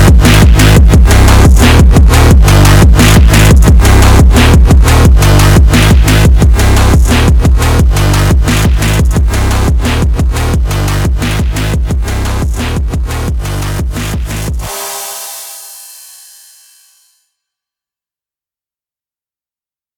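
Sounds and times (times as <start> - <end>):
phonk music: 0.0 - 15.4.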